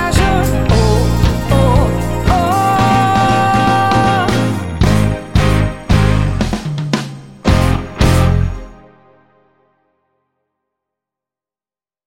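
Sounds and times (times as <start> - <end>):
pop music medley: 0.0 - 8.8.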